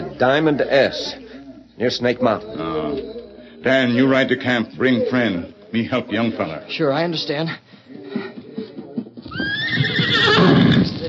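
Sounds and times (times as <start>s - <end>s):
speech: 0.2s - 1.2s, 1.8s - 7.8s
horse whinnying: 9.3s - 11.0s.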